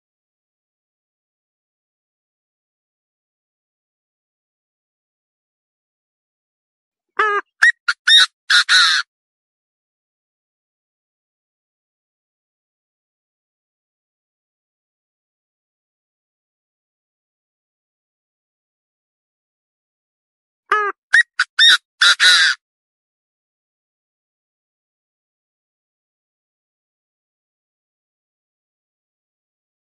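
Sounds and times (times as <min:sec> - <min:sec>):
partridge calling: 0:07.2 - 0:09.0, 0:20.7 - 0:22.6.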